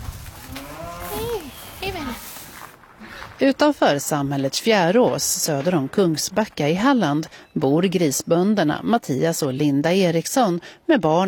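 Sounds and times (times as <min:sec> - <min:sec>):
cows mooing: 0:00.4 - 0:01.6
speech: 0:03.4 - 0:11.2.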